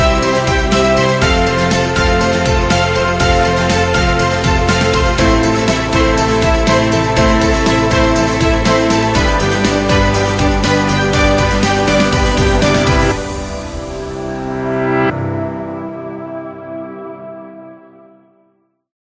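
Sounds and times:
positive energetic corporate music: 0.0s - 15.0s.

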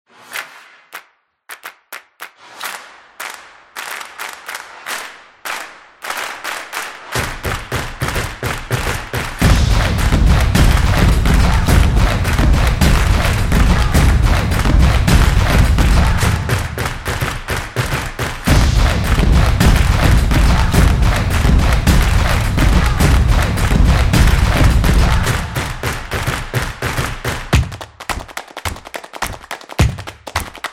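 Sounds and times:
stomping corporate music: 7.4s - 30.6s.

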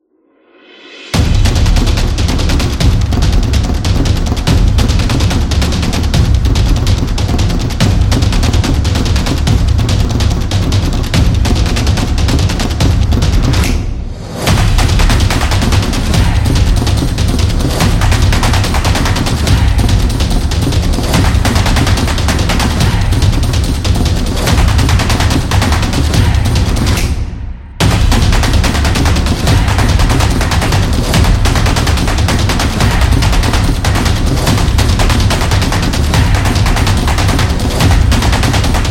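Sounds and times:
drumming: 1.1s - 38.8s.

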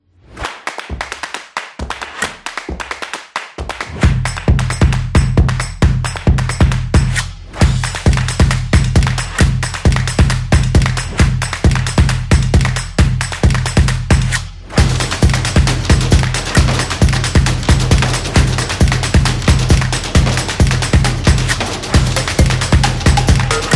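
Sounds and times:
drums: 4.5s - 23.7s.

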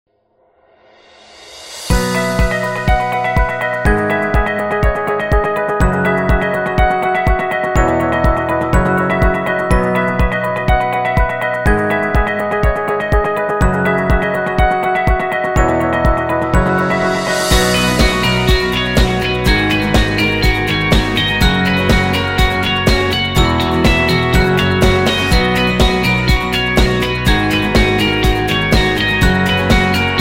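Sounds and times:
happy corporate music: 1.9s - 30.1s.

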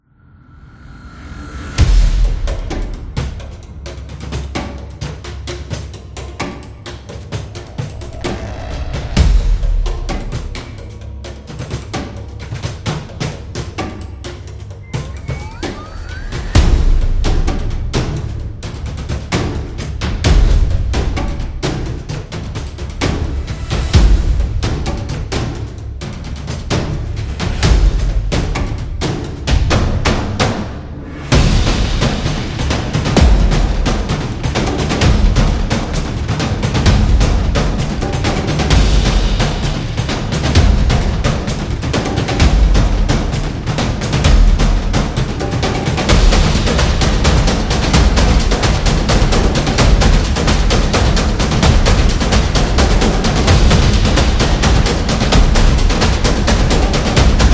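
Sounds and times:
epic drums: 0.6s - 57.5s.

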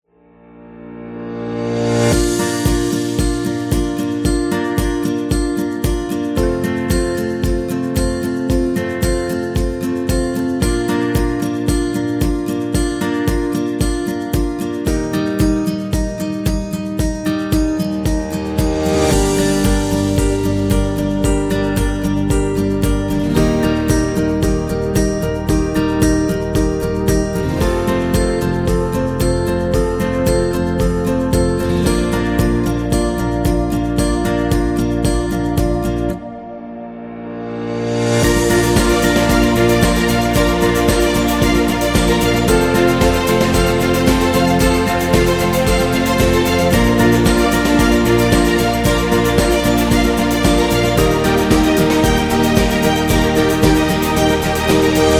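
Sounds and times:
emotional acoustic guitar music: 0.4s - 55.1s.

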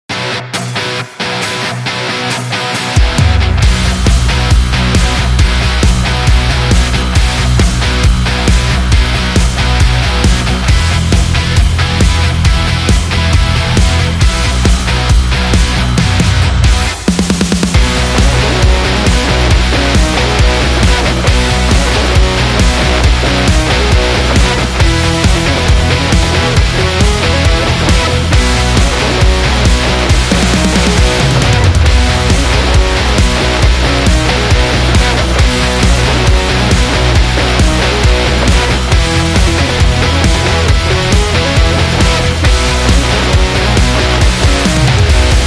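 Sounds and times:
rock and roll music: 0.0s - 45.4s.

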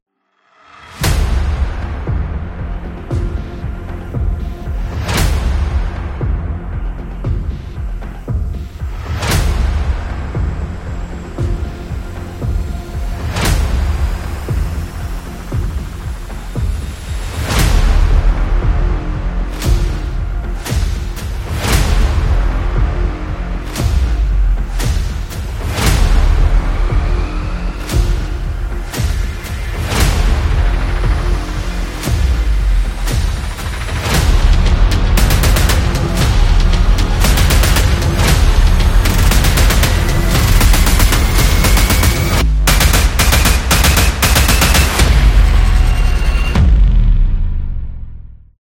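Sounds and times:
action trailer battle background music: 0.4s - 48.6s.

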